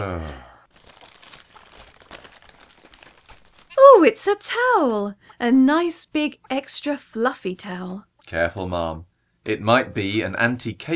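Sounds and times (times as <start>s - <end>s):
speech: 0.1s - 0.5s, 4.0s - 10.9s
Christmas gift wrapping paper crinkling and tearing: 0.7s - 3.8s.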